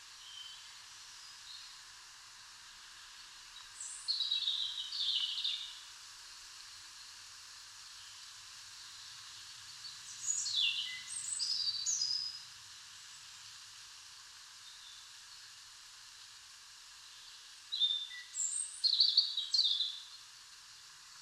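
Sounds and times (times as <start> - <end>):
soft hiss: 0.0 - 21.2
European robin singing: 3.8 - 5.8, 10.1 - 12.4, 17.7 - 20.1.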